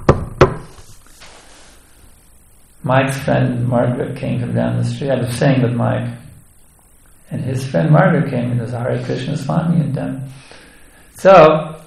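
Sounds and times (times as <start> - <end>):
knocks on a door: 0.0 - 0.7
speech: 2.8 - 6.2, 7.4 - 10.6, 11.2 - 11.8.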